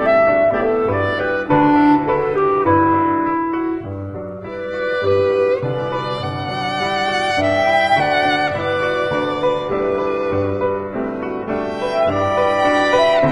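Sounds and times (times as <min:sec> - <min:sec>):
clarinet: 0:00.0 - 0:13.3
piano: 0:00.0 - 0:13.3
violin: 0:00.0 - 0:13.3.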